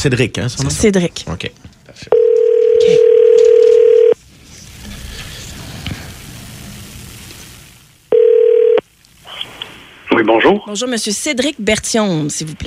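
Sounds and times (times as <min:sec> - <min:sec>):
speech: 0:00.0 - 0:03.3, 0:10.4 - 0:12.6
telephone line tone on an outgoing call: 0:02.1 - 0:04.2, 0:08.1 - 0:08.8
soft hiss: 0:04.2 - 0:12.6.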